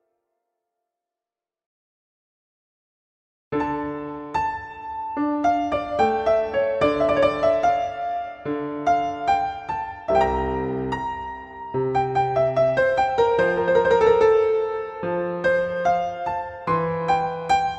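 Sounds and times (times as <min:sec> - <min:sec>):
classical solo piano concerto: 0:03.5 - 0:17.7.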